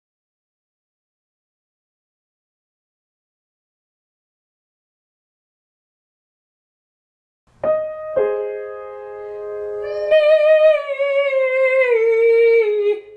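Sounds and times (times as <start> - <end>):
person singing legato and staccato ascending to high G: 9.8 - 13.1.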